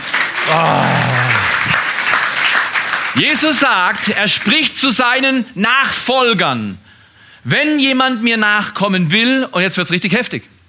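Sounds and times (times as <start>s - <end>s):
crowd clapping: 0.0s - 4.7s
speech: 0.5s - 1.2s, 3.2s - 6.8s, 7.4s - 10.5s.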